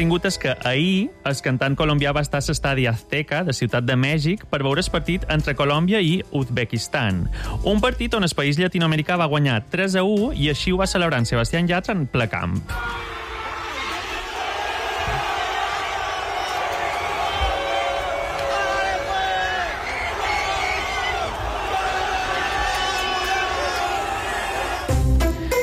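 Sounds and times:
speech: 0.0s - 13.1s
men shouting and cheering: 12.7s - 25.1s
stadium crowd roaring: 12.7s - 25.1s.

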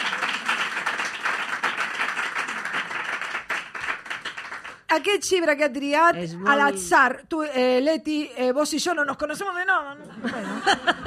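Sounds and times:
audience applause: 0.0s - 4.9s
speech: 5.0s - 11.0s
laughter: 10.0s - 11.0s.

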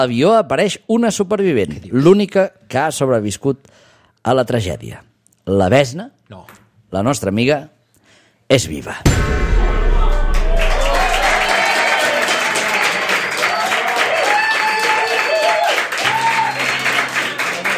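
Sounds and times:
speech: 0.0s - 7.8s, 8.5s - 9.6s
audience applause: 10.2s - 17.7s.

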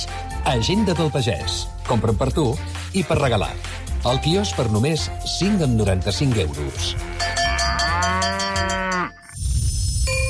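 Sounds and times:
speech: 0.4s - 7.3s
dairy cow mooing: 6.9s - 9.3s.

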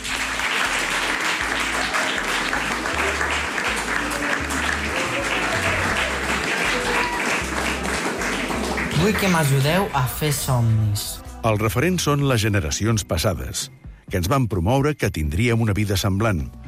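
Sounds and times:
audience applause: 0.0s - 10.1s
speech: 9.0s - 16.6s.

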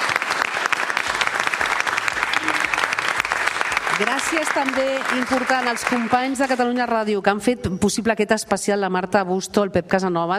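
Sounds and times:
live audience applause: 0.0s - 6.9s
speech: 4.0s - 10.3s.

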